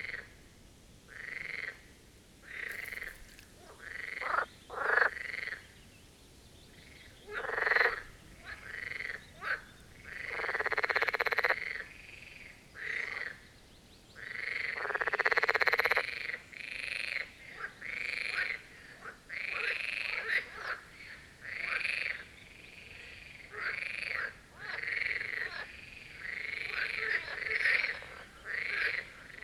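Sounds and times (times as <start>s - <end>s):
marsh frogs croaking in chorus: 0.0s - 0.4s, 1.1s - 5.8s, 6.7s - 13.5s, 14.2s - 29.4s.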